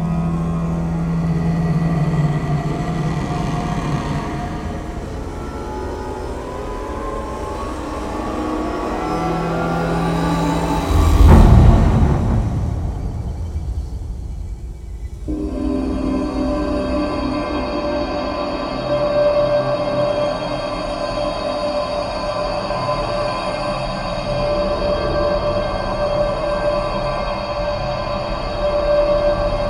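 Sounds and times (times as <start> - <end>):
cinematic horror tension sound effect: 0.0 - 29.6.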